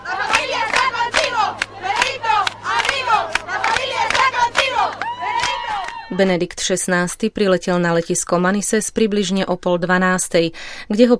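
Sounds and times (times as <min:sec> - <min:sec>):
crowd of young Spaniards chanting to welcome Pope Benedict XVI: 0:00.0 - 0:06.1
people clapping: 0:00.0 - 0:06.2
people shouting: 0:00.0 - 0:06.2
speech: 0:06.2 - 0:11.1.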